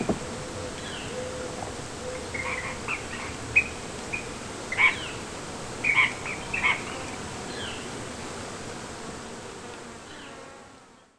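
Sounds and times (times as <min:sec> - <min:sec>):
Ash-throated flycatcher calling: 0:00.0 - 0:05.2, 0:05.8 - 0:07.9.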